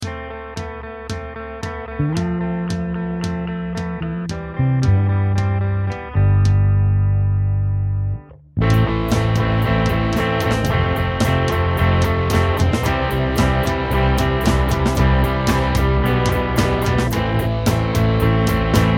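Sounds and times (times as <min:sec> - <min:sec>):
rock music in 4/4: 0:00.0 - 0:18.9.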